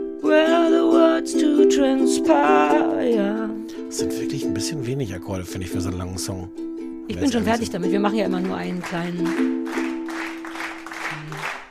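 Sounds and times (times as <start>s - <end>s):
speech: 1.2s - 9.8s
rhythmic clapping from about five people: 7.3s - 11.6s.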